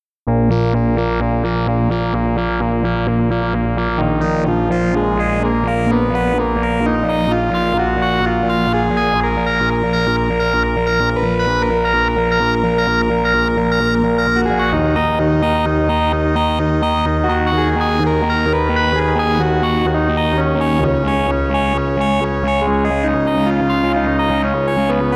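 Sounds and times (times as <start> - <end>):
phase shaper synth sequence: 0.6 - 25.1.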